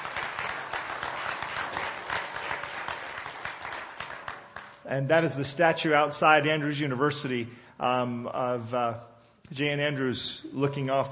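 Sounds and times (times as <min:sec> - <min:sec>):
crowd applauding: 0:00.0 - 0:04.8
speech: 0:04.9 - 0:11.1.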